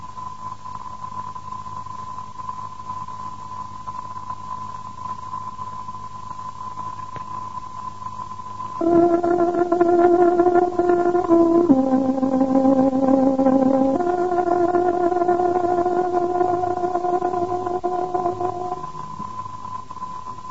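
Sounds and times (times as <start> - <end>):
tárogató melody as radio time signal: 8.8 - 19.0.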